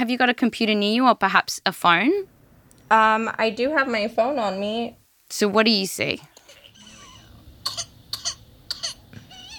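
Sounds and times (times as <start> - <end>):
speech: 0.0 - 6.3
baby coughing with whooping cough: 6.5 - 9.5.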